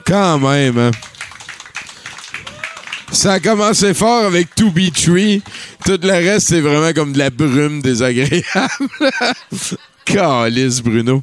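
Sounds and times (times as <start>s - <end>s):
speech: 0.0s - 1.1s, 3.1s - 11.2s
audience applause: 0.0s - 8.4s
laughter: 3.2s - 10.8s.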